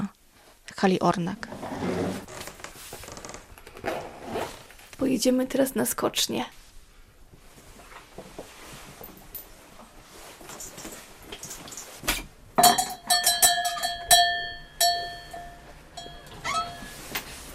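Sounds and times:
speech: 0.8s - 2.3s, 5.0s - 6.6s
bell greeting guests: 12.6s - 17.2s.

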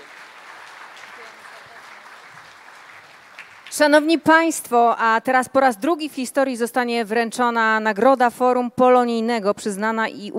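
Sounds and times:
audience applause: 0.0s - 4.1s
speech: 3.8s - 10.3s.

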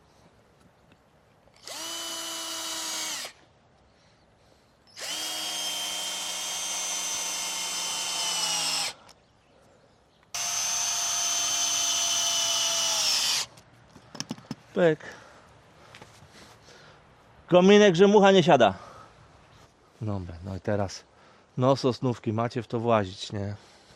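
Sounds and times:
power drill driving a self-drilling screw: 1.5s - 3.4s, 4.8s - 9.2s, 10.3s - 13.6s
speech: 14.8s - 15.2s, 17.5s - 18.8s, 20.0s - 23.7s.

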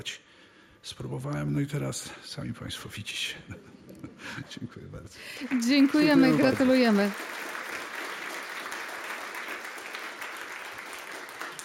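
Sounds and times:
speech: 0.0s - 7.6s
audience applause at a ceremony after congratulations: 5.2s - 11.6s.

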